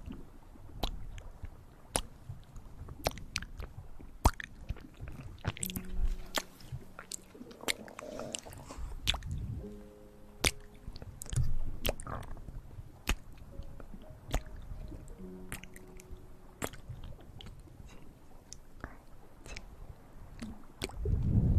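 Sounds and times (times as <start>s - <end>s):
wet mouth clicks, smacks and chewing: 0.8s - 9.6s, 10.4s - 12.4s, 13.0s - 19.7s, 20.4s - 21.2s
short low hummed tones: 5.4s - 21.5s.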